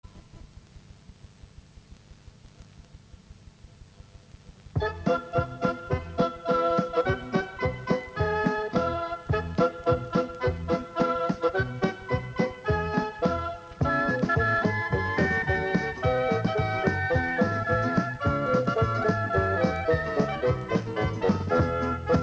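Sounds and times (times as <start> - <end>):
instrumental music: 4.8 - 22.2.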